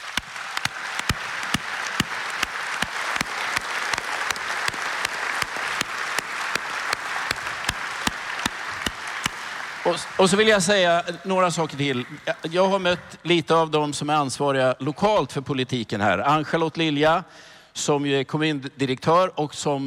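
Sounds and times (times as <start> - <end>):
warm audience applause: 0.0 - 12.8
speech: 9.9 - 19.8.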